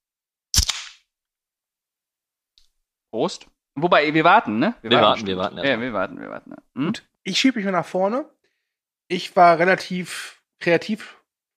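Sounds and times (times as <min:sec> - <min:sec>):
beer bottle opening: 0:00.6 - 0:01.0
speech: 0:03.1 - 0:08.4, 0:09.1 - 0:11.2.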